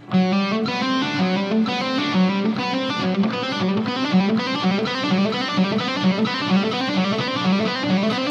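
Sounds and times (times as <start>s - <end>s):
distorted electric guitar playing a hammer-on exercise: 0.0s - 8.3s.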